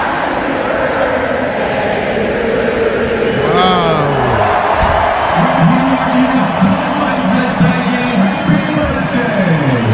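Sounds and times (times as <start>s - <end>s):
crowd singing: 0.0s - 6.8s
stadium crowd of American football fans cheering: 3.3s - 9.0s.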